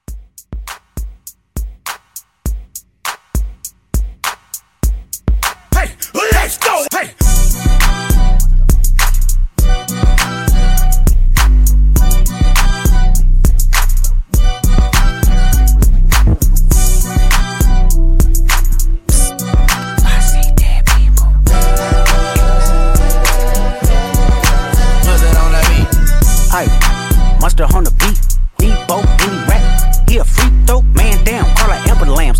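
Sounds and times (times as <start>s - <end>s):
drum beat: 0.0s - 32.3s.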